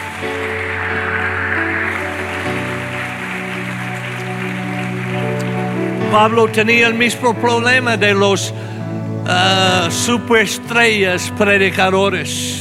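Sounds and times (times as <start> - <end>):
audience applauding: 0.0 - 8.6
speech: 6.1 - 8.7, 9.3 - 12.5.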